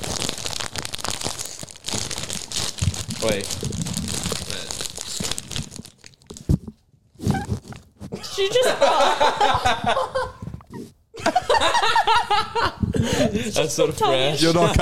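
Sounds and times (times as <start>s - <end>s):
bag of hot chips crinkling and tearing against the microphone: 0.0s - 6.8s
speech: 3.2s - 3.7s, 8.4s - 10.2s, 11.6s - 14.7s
laughter: 8.2s - 10.4s, 11.2s - 13.6s.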